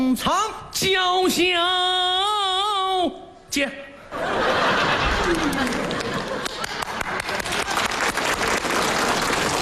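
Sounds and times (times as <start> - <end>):
speech: 0.1 - 2.3, 3.1 - 5.8
laughter: 4.1 - 7.9
small group clapping: 4.9 - 9.6.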